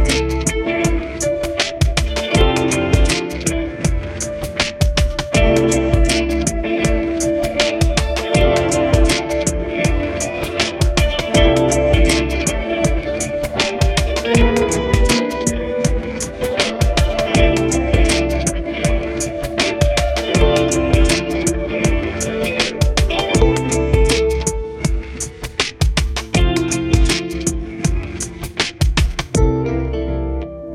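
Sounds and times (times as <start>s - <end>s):
lofi snow guitar: 0.0s - 30.7s.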